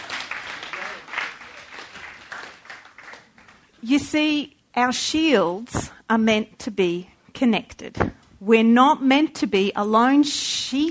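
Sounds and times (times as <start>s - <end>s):
audience applause: 0.0s - 3.7s
speech: 3.8s - 10.8s.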